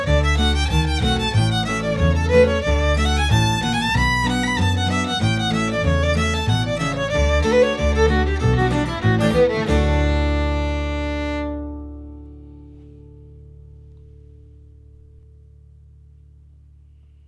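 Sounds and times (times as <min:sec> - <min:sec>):
fiddle playing: 0:00.0 - 0:12.4.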